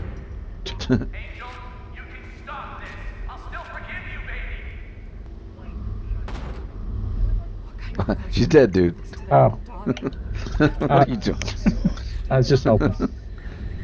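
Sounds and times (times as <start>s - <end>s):
laughter: 0.7s - 1.2s, 7.8s - 13.4s
speech: 0.9s - 1.6s, 8.0s - 13.2s
video game gunshots: 6.2s - 6.8s.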